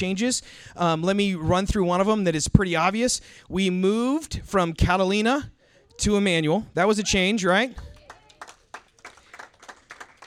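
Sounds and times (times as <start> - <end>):
speech: 0.0 - 7.9
audience clapping: 7.8 - 10.2.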